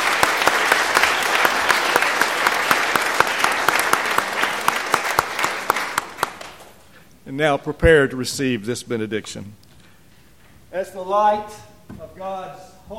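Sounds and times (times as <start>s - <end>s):
audience applause for a choir: 0.0s - 6.8s
speech: 7.3s - 9.6s, 10.8s - 12.9s.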